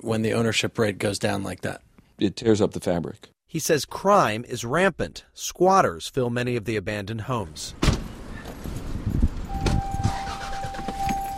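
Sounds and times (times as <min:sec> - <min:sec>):
speech: 0:00.0 - 0:07.9
car driving with low road rumble: 0:07.7 - 0:11.3.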